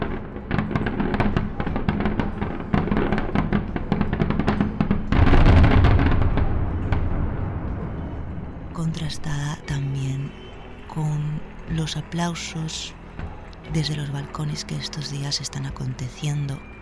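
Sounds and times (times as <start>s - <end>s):
mascletà firecracker barrage during Fallas: 0.0s - 11.7s
speech: 11.8s - 13.0s, 13.7s - 16.7s.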